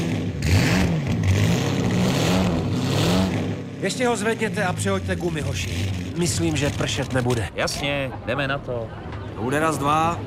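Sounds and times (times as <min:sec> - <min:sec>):
car engine revving: 0:00.0 - 0:07.6
speech: 0:03.8 - 0:10.2.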